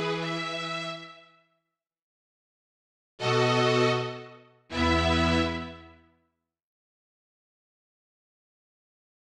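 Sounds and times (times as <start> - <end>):
orchestra: 0.0 - 1.3, 3.2 - 6.0.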